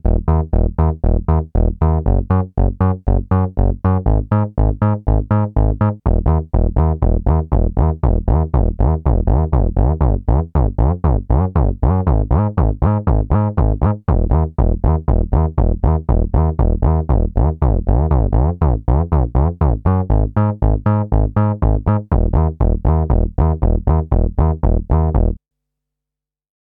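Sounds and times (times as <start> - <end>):
Teisco S100P synthesizer wood bass with portamento: 0.0 - 25.4.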